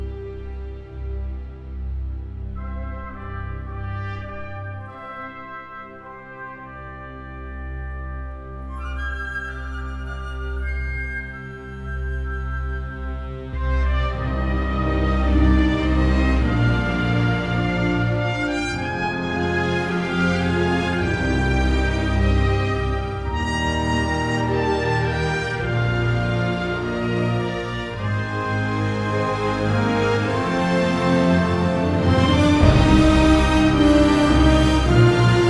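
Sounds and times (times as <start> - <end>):
victory melody: 0.0 - 35.4.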